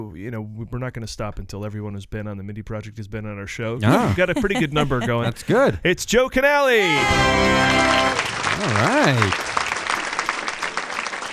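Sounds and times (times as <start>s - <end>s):
speech: 0.0s - 9.6s
laughter: 3.8s - 5.8s, 8.6s - 9.4s
hand claps: 7.6s - 11.3s.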